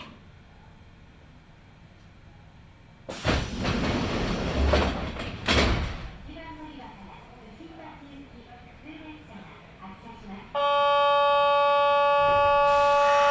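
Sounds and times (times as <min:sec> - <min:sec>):
train sliding doors opening at station: 0:00.0 - 0:00.3, 0:03.1 - 0:06.2, 0:11.4 - 0:13.3.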